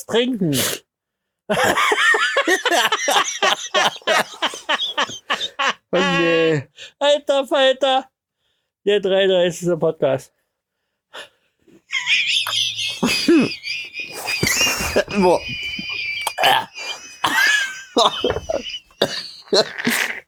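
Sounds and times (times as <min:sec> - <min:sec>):
speech: 0:00.0 - 0:00.8, 0:01.5 - 0:08.1, 0:08.8 - 0:10.4, 0:11.1 - 0:11.3, 0:13.3 - 0:15.8, 0:16.4 - 0:16.8, 0:18.0 - 0:20.2
laughter: 0:01.5 - 0:06.5, 0:11.9 - 0:20.0
strained gasps and throaty wheezes: 0:12.4 - 0:20.2
person coughing after choking on a drink: 0:12.9 - 0:20.2.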